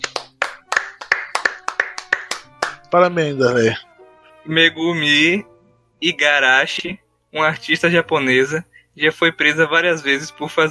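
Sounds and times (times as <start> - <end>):
hand clapping: 0.0 - 2.9
speech: 2.9 - 10.6.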